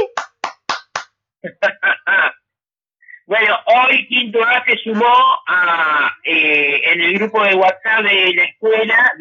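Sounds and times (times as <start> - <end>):
applause: 0.1 - 1.1
speech: 3.3 - 9.1.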